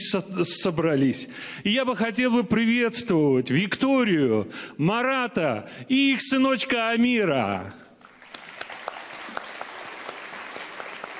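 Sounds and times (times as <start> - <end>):
speech: 0.1 - 7.8
applause in a hall: 8.0 - 11.1.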